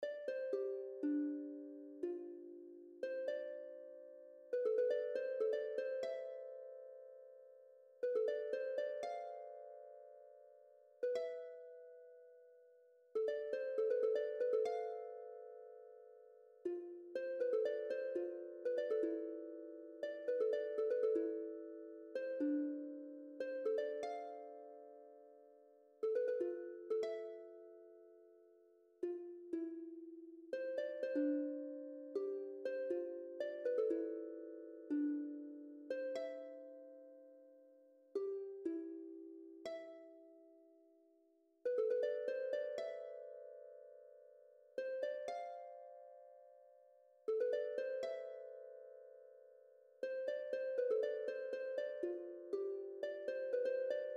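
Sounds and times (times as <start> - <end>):
harp: 0.0 - 54.1.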